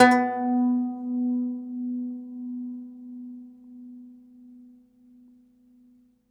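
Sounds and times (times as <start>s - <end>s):
segundo domra plucked strings: 0.0s - 4.0s.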